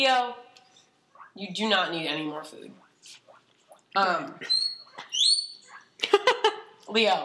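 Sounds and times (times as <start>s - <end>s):
speech: 1.4s - 3.2s, 4.0s - 4.6s, 6.9s - 7.2s
guinea pig whistling: 4.4s - 5.9s.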